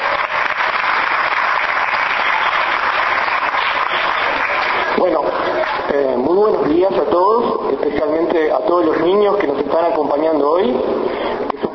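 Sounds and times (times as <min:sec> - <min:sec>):
audience applause: 0:00.0 - 0:05.9
speech: 0:06.0 - 0:11.6.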